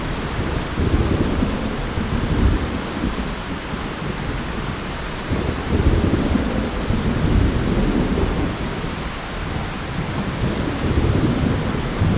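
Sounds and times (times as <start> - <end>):
deep rumbling thunder: 0.0 - 12.1
heavy rain: 0.0 - 12.1.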